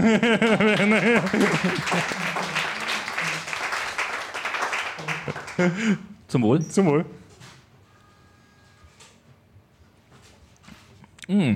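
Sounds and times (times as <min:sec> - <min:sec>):
speech: 0:00.0 - 0:02.4, 0:05.3 - 0:07.2, 0:11.3 - 0:11.5
laughter: 0:00.0 - 0:06.2
audience applause: 0:00.4 - 0:05.9.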